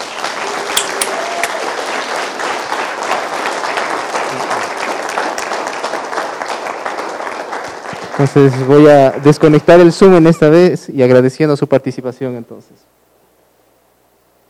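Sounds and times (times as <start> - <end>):
applause: 0.0 - 10.2
speech: 8.2 - 12.9.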